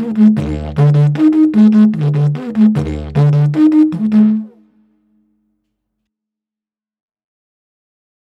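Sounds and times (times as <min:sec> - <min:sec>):
advanced-level rhythm: 0:00.0 - 0:04.6.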